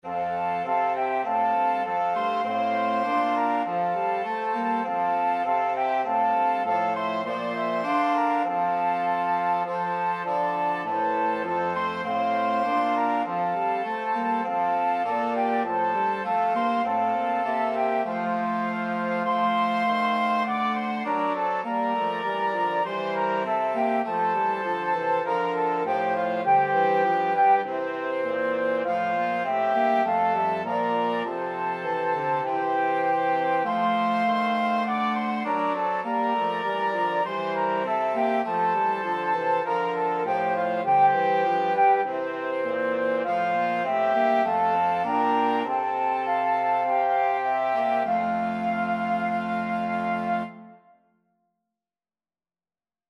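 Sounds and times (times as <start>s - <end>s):
flexible mixed ensemble of four players: 0.1s - 50.8s.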